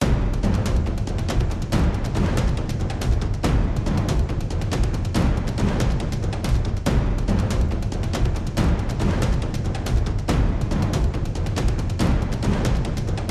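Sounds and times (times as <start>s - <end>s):
chase music loop: 0.0s - 13.2s.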